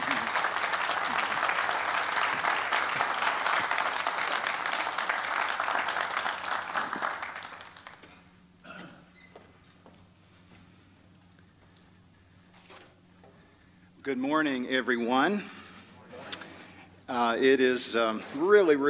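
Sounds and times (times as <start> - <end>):
audience applause welcoming a speaker: 0.0 - 8.3
speech: 14.1 - 15.6, 17.1 - 18.8.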